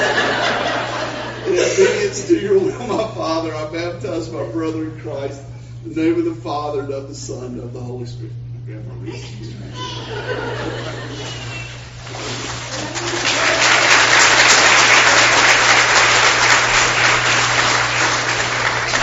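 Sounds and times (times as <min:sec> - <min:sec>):
laughter: 0:00.0 - 0:03.6, 0:09.0 - 0:11.9, 0:12.7 - 0:14.4
speech: 0:02.1 - 0:13.2
audience applause: 0:10.7 - 0:19.0.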